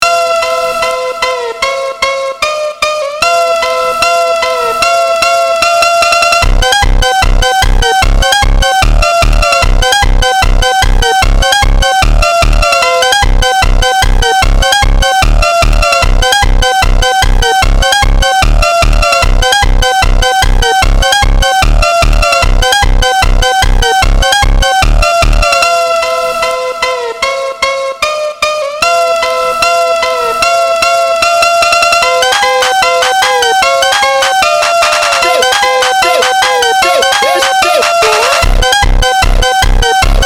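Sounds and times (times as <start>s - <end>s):
phonk version: 0.0s - 40.2s.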